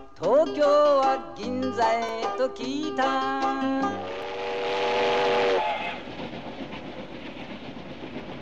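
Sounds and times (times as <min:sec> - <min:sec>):
speech: 0:00.4 - 0:04.1
express steam train running on rails: 0:02.6 - 0:08.4.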